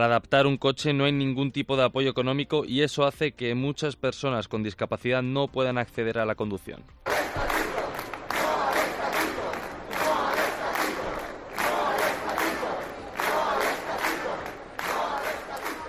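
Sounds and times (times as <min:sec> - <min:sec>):
speech: 0:00.0 - 0:07.1
protesting doctors chanting: 0:07.0 - 0:15.8.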